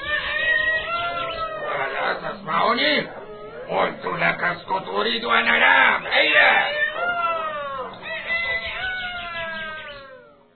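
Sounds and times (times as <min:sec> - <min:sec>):
rooster crowing: 0:00.0 - 0:04.1, 0:06.0 - 0:10.5
speech: 0:02.4 - 0:06.8.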